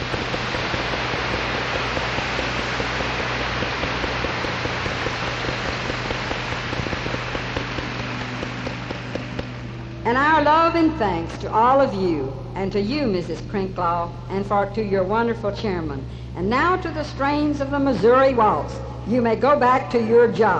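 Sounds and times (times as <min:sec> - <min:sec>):
audience clapping hands: 0:00.0 - 0:09.6
speech: 0:10.1 - 0:20.5.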